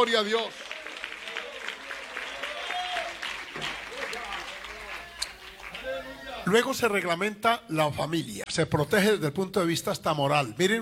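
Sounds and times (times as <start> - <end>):
speech: 0.0 - 0.6, 5.8 - 10.8
audience applause: 0.0 - 6.5.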